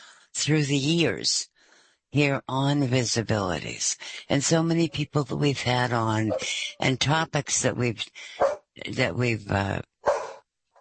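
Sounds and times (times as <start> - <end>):
speech: 0.4 - 1.5, 2.1 - 9.9
dog making longer tonal vocal sounds: 6.3 - 6.6, 8.4 - 8.6, 10.1 - 10.4
dog barking: 8.4 - 8.6, 10.0 - 10.4.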